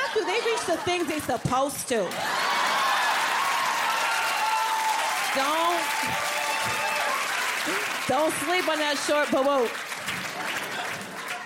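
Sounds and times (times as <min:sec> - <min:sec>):
laughter: 0:00.0 - 0:01.5
speech: 0:00.2 - 0:02.4, 0:05.3 - 0:06.8, 0:07.6 - 0:09.8
audience clapping: 0:02.1 - 0:11.4.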